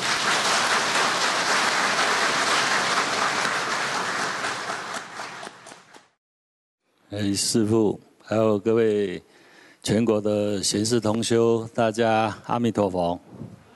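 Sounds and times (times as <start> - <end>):
audience applause: 0.0 - 6.0
speech: 7.1 - 13.6.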